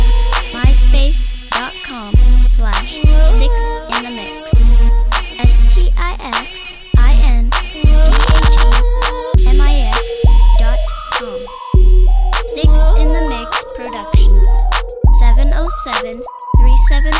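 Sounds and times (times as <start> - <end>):
heartbeat: 0.0 - 1.3, 2.2 - 3.6, 4.6 - 5.8, 7.0 - 15.7, 16.6 - 17.1.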